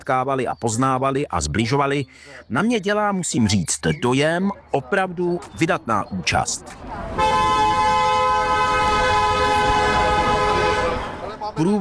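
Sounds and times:
speech: 0.0s - 7.4s, 11.6s - 11.7s
passing cars honking horns: 7.1s - 11.6s.

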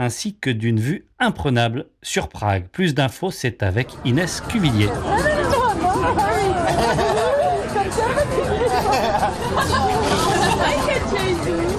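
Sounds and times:
speech: 0.0s - 5.3s, 6.0s - 7.2s
chatter in a park beer garden in Prague: 3.6s - 11.7s
people laughing in a park beer garden: 5.0s - 11.7s.

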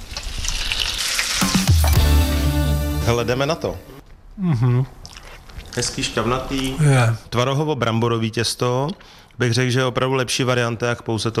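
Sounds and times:
potato-and-quark dumplings frying in lard in a pan: 0.0s - 1.8s
speech: 3.1s - 5.0s, 5.8s - 11.3s.

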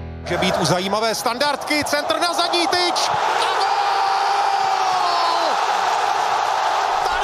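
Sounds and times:
speech: 0.3s - 3.7s
crowd cheering in Zbrojovka Brno football stadium during a match: 0.3s - 7.2s.

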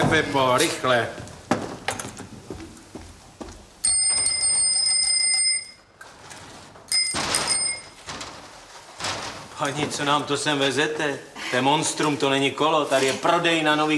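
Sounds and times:
speech: 0.1s - 1.2s, 9.6s - 13.9s
bell being rung and tested: 3.8s - 5.9s, 6.9s - 8.0s.

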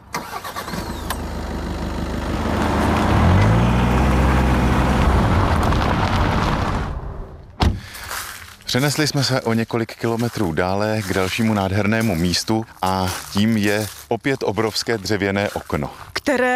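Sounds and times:
car engine starting and idling: 0.0s - 8.0s
thump: 7.6s - 7.9s
speech: 8.7s - 16.5s.

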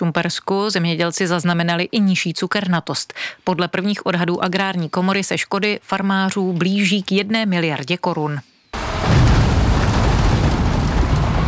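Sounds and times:
speech: 0.0s - 8.5s
loader dumping sugar beets onto conveyor: 8.8s - 11.4s.

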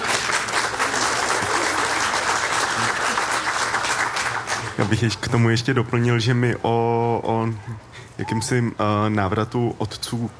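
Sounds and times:
audience applause: 0.0s - 4.8s
speech: 4.9s - 10.3s.

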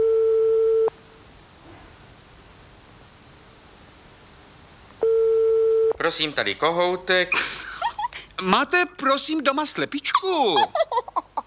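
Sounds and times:
telephone ringing tone on the line: 0.0s - 0.9s, 5.0s - 6.0s
soft hiss: 0.0s - 11.4s
speech: 6.1s - 7.6s, 8.4s - 11.1s
laughter: 7.3s - 8.3s, 10.2s - 11.4s.

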